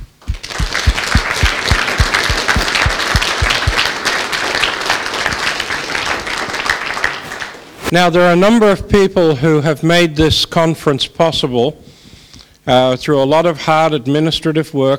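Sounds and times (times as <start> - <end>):
audience applause: 0.0 - 7.8
speech: 7.9 - 11.9, 12.7 - 14.9.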